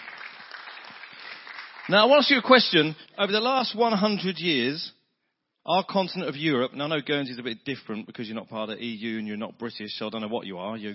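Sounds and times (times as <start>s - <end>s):
audience round of applause: 0.0s - 2.8s
speech: 1.9s - 5.0s, 5.6s - 10.9s.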